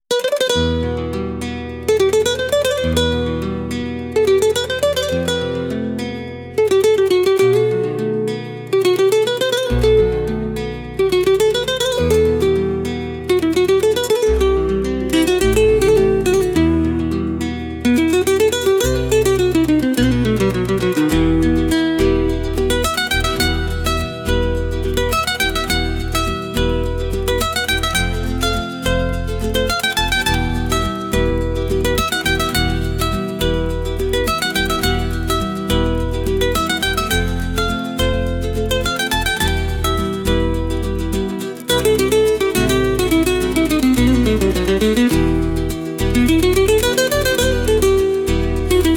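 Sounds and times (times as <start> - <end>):
string instruments: 0.1 - 48.9.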